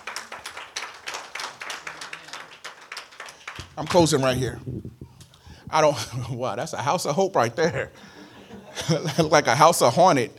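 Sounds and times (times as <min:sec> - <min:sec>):
audience hand clapping: 0:00.0 - 0:04.6
speech: 0:03.8 - 0:05.1, 0:05.7 - 0:08.1, 0:08.8 - 0:10.3
laughter: 0:07.5 - 0:09.5.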